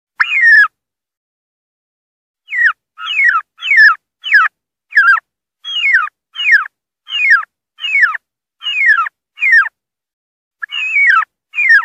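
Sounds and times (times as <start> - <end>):
wild turkey distress calling: 0.2 - 0.8, 2.5 - 9.8, 10.6 - 11.8.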